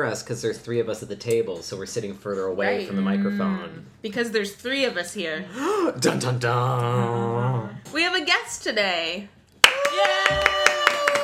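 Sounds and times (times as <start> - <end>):
speech: 0.0 - 9.4
one person clapping: 9.6 - 11.2.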